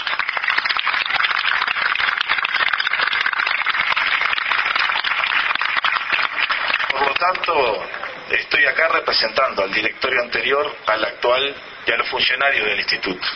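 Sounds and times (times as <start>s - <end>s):
audience applause: 0.0s - 9.1s
speech: 7.2s - 13.3s.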